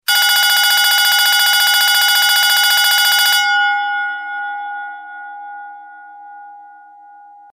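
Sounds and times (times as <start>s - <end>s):
alarm clock ringing with a different sound: 0.1s - 6.6s.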